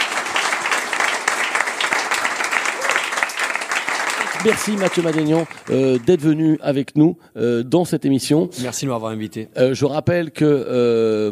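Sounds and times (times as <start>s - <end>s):
audience applause: 0.0s - 6.6s
speech: 4.4s - 11.3s.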